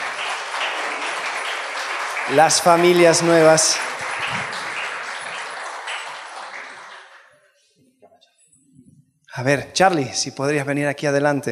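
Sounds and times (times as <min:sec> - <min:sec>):
audience applause: 0:00.0 - 0:07.4
speech: 0:02.3 - 0:04.6, 0:09.4 - 0:11.5.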